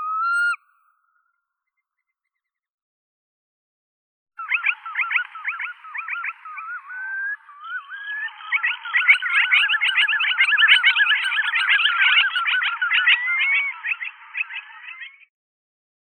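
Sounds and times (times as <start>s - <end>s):
red knot Calidris canutus calling: 4.4s - 15.3s.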